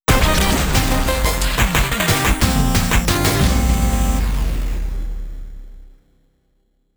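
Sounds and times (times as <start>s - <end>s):
8-bit chiptune remix: 0.1s - 4.4s.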